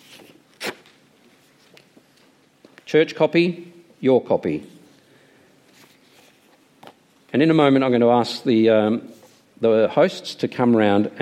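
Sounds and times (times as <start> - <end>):
paper commitment card tearing: 0.0 - 0.9
hiss: 0.0 - 11.2
speech: 2.9 - 4.8, 7.4 - 11.2.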